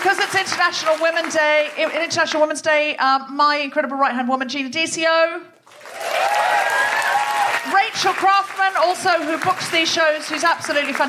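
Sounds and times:
audience applause: 0:00.0 - 0:02.0, 0:05.7 - 0:11.0
speech: 0:00.0 - 0:06.8, 0:07.6 - 0:11.0.

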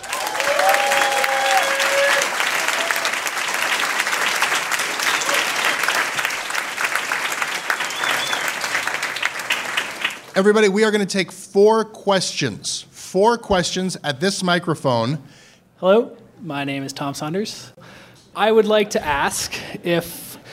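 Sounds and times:
faint whistles and cheers: 0:00.0 - 0:03.2, 0:05.0 - 0:05.8, 0:07.5 - 0:08.7
audience clapping: 0:00.0 - 0:10.7
speech: 0:10.4 - 0:17.8, 0:18.4 - 0:20.2.

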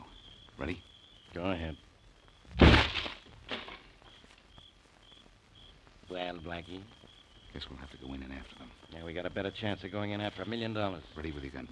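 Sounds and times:
speech: 0:00.6 - 0:01.9, 0:06.1 - 0:11.6
door being kicked open: 0:02.6 - 0:03.9.

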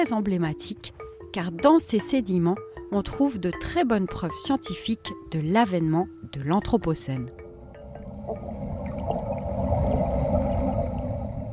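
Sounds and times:
speech: 0:00.0 - 0:07.4
metal coring tube sinking into a lake underwater: 0:07.7 - 0:11.5.

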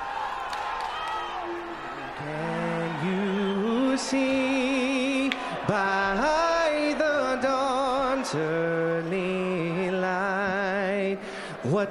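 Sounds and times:
arena crowd shouting before boxing match in the MGM Grand Garden, Las Vegas: 0:00.0 - 0:11.8
speech: 0:02.2 - 0:02.5, 0:04.0 - 0:04.8, 0:05.6 - 0:06.3, 0:08.2 - 0:11.8.

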